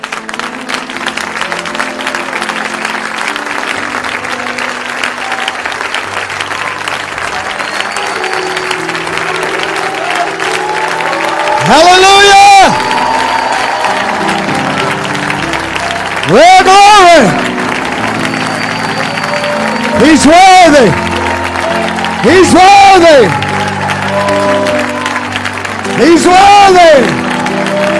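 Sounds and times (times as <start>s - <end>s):
large audience applauding enthusiastically: 0.0s - 27.9s
rising cheer or whistle: 7.2s - 14.9s, 18.0s - 25.3s, 26.0s - 27.9s
speech: 11.7s - 12.1s, 20.2s - 21.0s, 22.2s - 23.4s, 26.0s - 27.2s.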